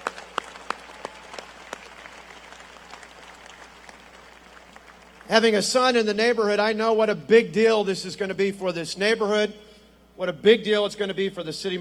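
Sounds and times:
audience applauding: 0.0s - 5.4s
speech: 5.3s - 11.7s.

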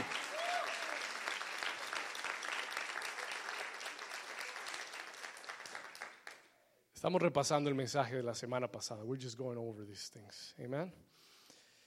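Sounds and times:
audience applause: 0.0s - 6.5s
speech: 7.0s - 11.2s.

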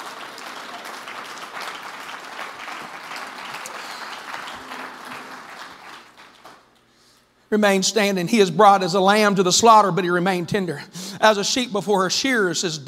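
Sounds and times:
audience clapping hands: 0.0s - 7.2s
speech: 7.5s - 12.8s.

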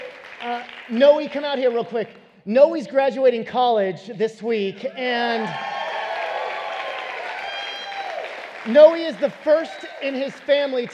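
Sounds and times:
audience applause: 0.0s - 1.4s, 5.3s - 10.9s
speech: 0.4s - 5.7s, 8.7s - 10.9s.

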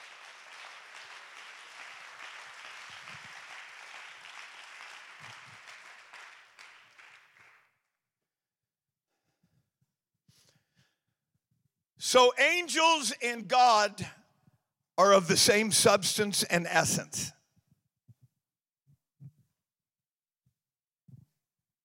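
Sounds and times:
audience clapping hands: 0.0s - 7.9s
speech: 12.1s - 14.2s, 15.0s - 17.4s.

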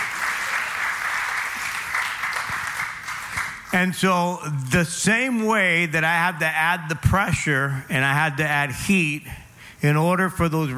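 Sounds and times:
audience clapping: 0.0s - 3.8s
speech: 3.7s - 10.7s.

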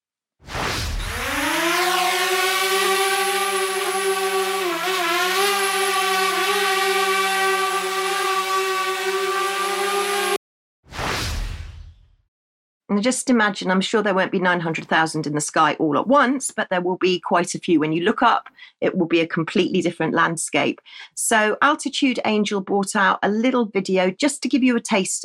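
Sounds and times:
single drone flying: 0.5s - 10.4s
speech: 13.0s - 25.2s.

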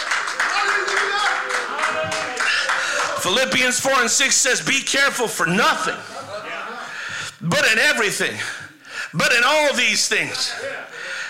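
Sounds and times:
audience clapping in praise: 0.0s - 4.2s
speech: 3.2s - 6.1s, 7.4s - 10.8s.

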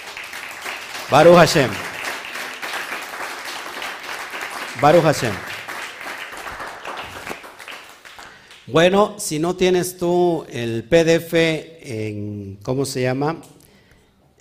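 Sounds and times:
applause: 0.0s - 8.7s
speech: 1.1s - 1.9s, 4.8s - 5.5s, 8.7s - 13.6s.

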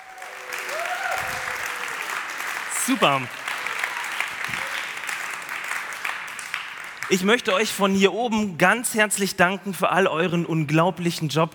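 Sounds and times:
audience applause: 0.0s - 7.8s
speech: 2.9s - 3.4s, 7.1s - 11.5s.

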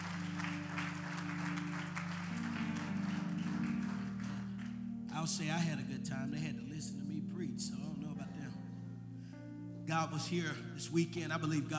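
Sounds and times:
audience clapping: 0.0s - 4.9s
low keyboard or organ tones droning: 0.0s - 11.7s
speech: 5.2s - 8.6s, 9.9s - 11.7s.

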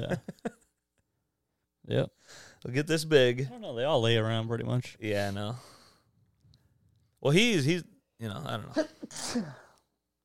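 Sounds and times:
speech: 0.0s - 0.4s, 1.9s - 5.7s, 7.2s - 9.6s
sneeze: 9.1s - 9.6s.

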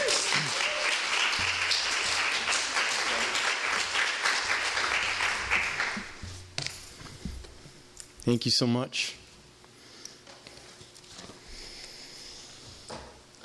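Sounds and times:
audience applause welcoming a poet at a reading series: 0.0s - 6.2s
speech: 8.3s - 9.2s.

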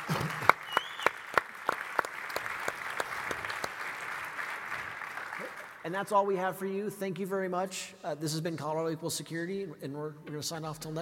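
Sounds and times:
audience applause: 0.0s - 5.8s
speech: 5.9s - 11.0s.

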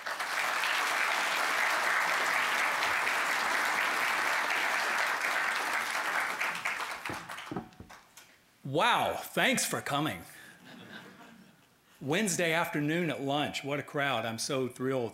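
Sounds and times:
audience applause welcoming speaker: 0.0s - 8.0s
speech: 8.7s - 10.4s, 12.0s - 15.1s
laughter: 10.6s - 11.8s.

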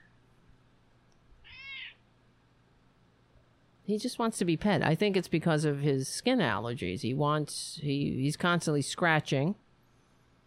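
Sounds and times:
cat meowing: 1.4s - 2.0s
speech: 3.9s - 9.6s.

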